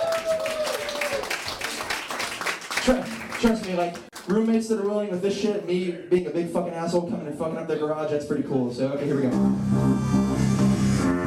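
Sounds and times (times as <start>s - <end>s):
friends clapping in a garage: 0.0s - 5.1s
speech: 2.8s - 10.2s.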